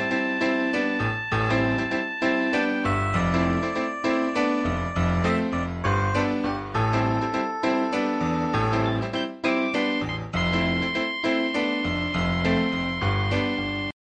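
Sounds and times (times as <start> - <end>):
solo piano for a radio advert: 0.0 - 14.0.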